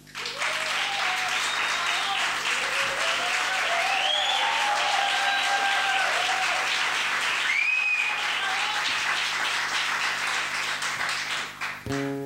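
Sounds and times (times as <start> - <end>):
audience applause: 0.0 - 12.1.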